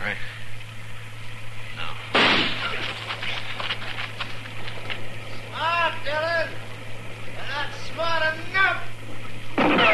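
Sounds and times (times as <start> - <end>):
steady low hum: 0.0 - 9.9
single gunshot fired at a tree in a radio drama: 2.1 - 2.9, 9.6 - 9.9.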